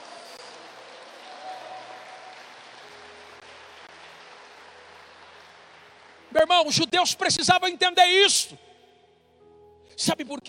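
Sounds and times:
audience applauding: 0:00.0 - 0:06.8
speech: 0:06.4 - 0:08.7, 0:10.0 - 0:10.4.

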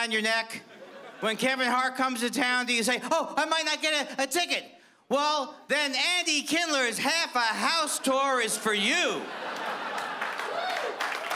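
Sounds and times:
speech: 0:00.0 - 0:09.6
laughter: 0:00.6 - 0:01.7, 0:07.7 - 0:11.3
small audience applause: 0:09.5 - 0:11.3.

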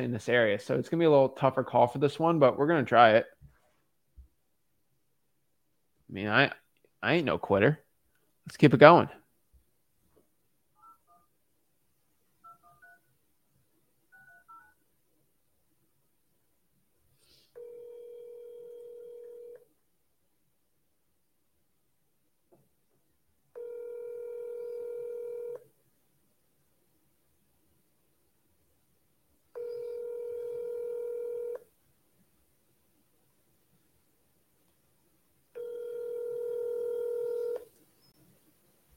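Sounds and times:
speech: 0:00.0 - 0:03.4, 0:06.1 - 0:07.8, 0:08.5 - 0:09.2
telephone dialing tones: 0:17.6 - 0:19.6, 0:23.6 - 0:25.6, 0:29.6 - 0:31.6, 0:35.6 - 0:37.7.

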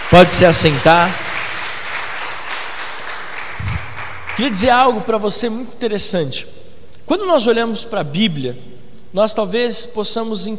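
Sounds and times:
audience applause: 0:00.0 - 0:04.8
speech: 0:00.1 - 0:01.2, 0:04.4 - 0:06.5, 0:07.1 - 0:10.5.

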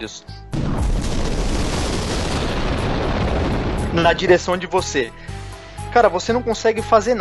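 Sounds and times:
speech: 0:00.0 - 0:00.8, 0:03.9 - 0:05.3, 0:06.0 - 0:07.1
great blast of fire: 0:00.5 - 0:04.8.

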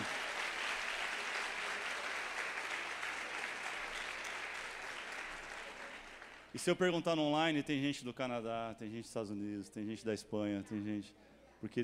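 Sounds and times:
audience applause: 0:00.0 - 0:06.5
speech: 0:06.5 - 0:11.8.

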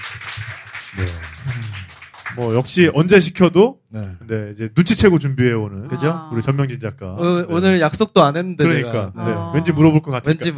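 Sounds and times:
applause: 0:00.0 - 0:02.9
speech: 0:00.9 - 0:01.3, 0:02.4 - 0:10.5.

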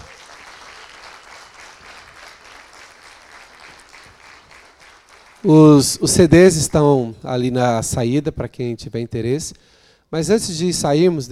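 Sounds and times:
audience applause: 0:00.0 - 0:05.8
speech: 0:05.4 - 0:11.2.

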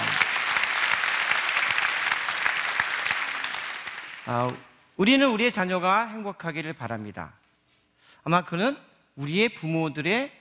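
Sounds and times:
audience applause: 0:00.0 - 0:04.3
speech: 0:04.3 - 0:07.4, 0:08.2 - 0:10.3.

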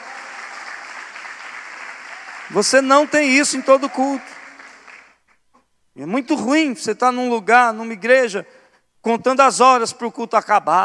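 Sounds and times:
audience applauding: 0:00.0 - 0:05.2
speech: 0:02.5 - 0:04.4, 0:06.0 - 0:10.8.

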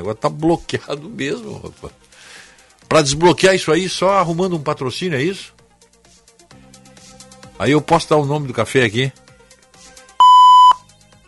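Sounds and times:
speech: 0:00.0 - 0:02.3, 0:02.9 - 0:05.6, 0:07.6 - 0:09.2
censor bleep: 0:10.2 - 0:10.8.

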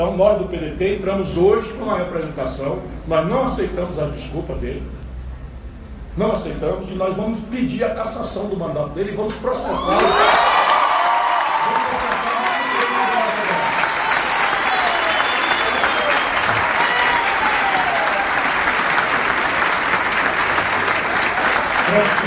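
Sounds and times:
speech: 0:00.0 - 0:05.0, 0:06.2 - 0:10.5
faint cheering: 0:09.6 - 0:22.2
audience applause: 0:09.8 - 0:22.2.

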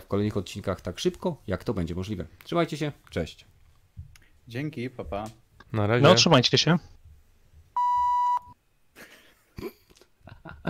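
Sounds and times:
speech: 0:00.1 - 0:03.5, 0:04.5 - 0:06.9
call-disconnect notification beep: 0:07.8 - 0:08.6.

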